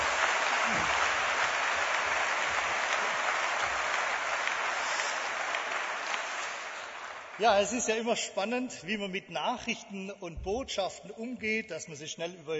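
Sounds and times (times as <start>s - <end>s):
audience clapping: 0.0s - 8.6s
speech: 7.4s - 12.5s.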